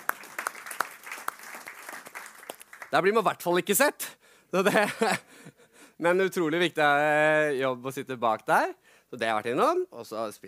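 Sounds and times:
audience applause: 0.0s - 3.1s
speech: 2.9s - 5.4s, 6.0s - 10.4s
laughter: 4.6s - 5.3s.

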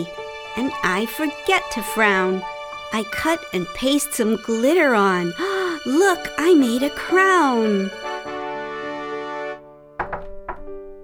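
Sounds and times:
speech: 0.0s - 8.1s
knocking: 10.0s - 11.0s.

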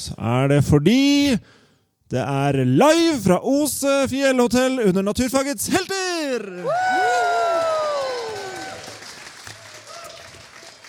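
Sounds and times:
speech: 0.0s - 7.0s
live audience applause: 6.6s - 10.8s.

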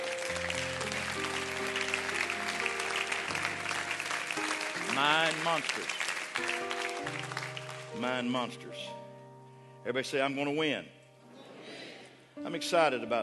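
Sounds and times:
large crowd applause: 0.0s - 8.0s
organ or keyboard playing held chords: 0.0s - 10.8s
speech: 5.0s - 7.3s, 8.0s - 9.0s, 9.8s - 11.0s, 12.5s - 13.2s.

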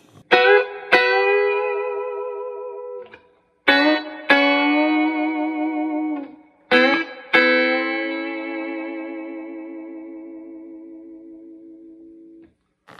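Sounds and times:
twangy electric guitar with Bigsby tremolo: 0.0s - 12.4s.

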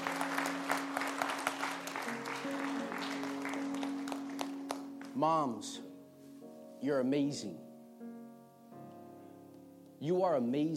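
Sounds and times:
crowd applauding: 0.0s - 5.2s
speech: 5.2s - 5.9s, 6.8s - 7.7s, 10.0s - 10.7s.

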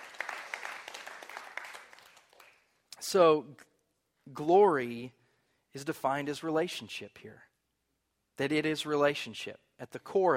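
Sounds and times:
audience applause: 0.0s - 2.6s
speech: 3.1s - 3.7s, 4.3s - 7.5s, 8.4s - 10.3s.

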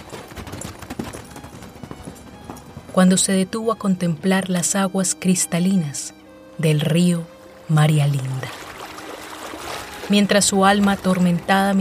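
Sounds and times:
horse hooves clip-clopping: 0.0s - 5.0s, 8.5s - 11.7s
speech: 3.0s - 8.6s, 10.1s - 11.7s.

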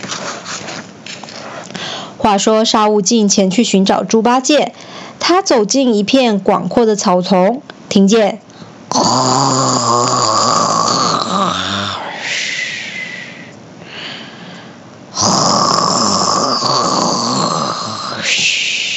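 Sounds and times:
speech: 2.2s - 8.4s, 9.0s - 10.2s
person snoring: 8.9s - 14.3s, 15.1s - 18.9s.

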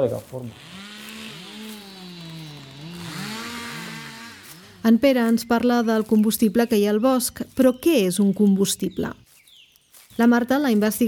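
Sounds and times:
speech: 0.0s - 0.8s, 4.8s - 9.2s, 10.2s - 11.0s
chainsaw engine running: 0.0s - 6.1s.

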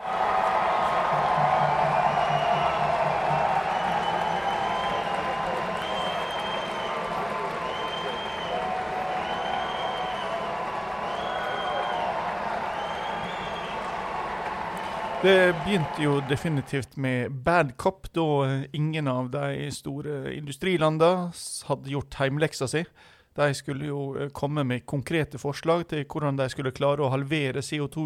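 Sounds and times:
large crowd cheering and applauding: 0.0s - 16.8s
rising whistles: 0.5s - 15.6s
speech: 15.2s - 28.0s.

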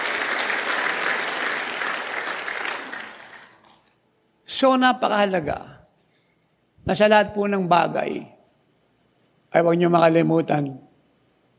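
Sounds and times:
congregation applauding at a church service: 0.0s - 4.0s
speech: 4.6s - 5.7s, 6.9s - 8.3s, 9.5s - 10.9s.

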